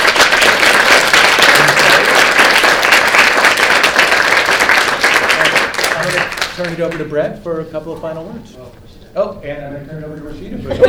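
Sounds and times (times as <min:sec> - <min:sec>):
audience applause after a panel discussion: 0:00.0 - 0:07.2
speech: 0:06.6 - 0:10.8.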